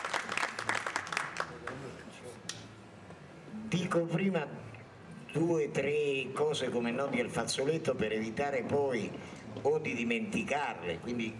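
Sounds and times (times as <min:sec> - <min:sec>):
audience applause: 0:00.0 - 0:01.9
speech: 0:03.7 - 0:04.7, 0:05.3 - 0:11.3.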